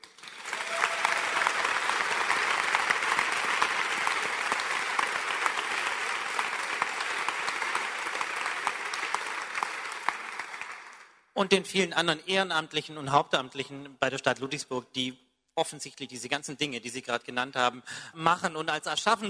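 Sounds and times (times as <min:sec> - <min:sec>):
audience applause: 0:00.0 - 0:11.2
speech: 0:11.4 - 0:19.2.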